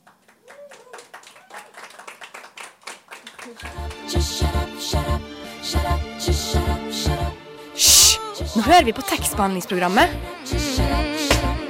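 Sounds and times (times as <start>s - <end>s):
audience applause: 0.0s - 4.1s
speech: 3.5s - 10.6s.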